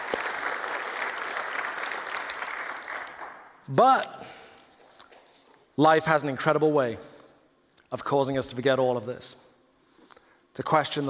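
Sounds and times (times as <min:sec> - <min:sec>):
audience clapping: 0:00.0 - 0:03.7
speech: 0:03.7 - 0:04.4, 0:05.8 - 0:07.1, 0:07.9 - 0:09.5, 0:10.6 - 0:11.0.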